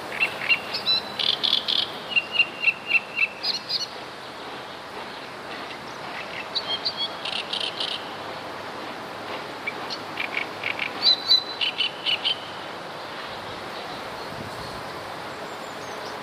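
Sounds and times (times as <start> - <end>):
great reed warbler song: 0.0 - 8.2, 9.6 - 16.2.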